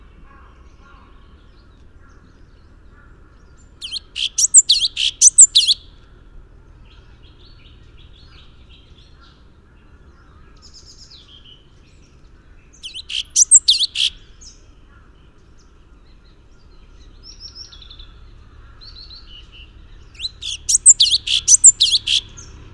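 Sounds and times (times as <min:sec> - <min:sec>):
Orange-bellied leafbird chattering high notes with squeaky whistle: 0:03.8 - 0:05.8, 0:12.8 - 0:14.1, 0:20.2 - 0:22.3.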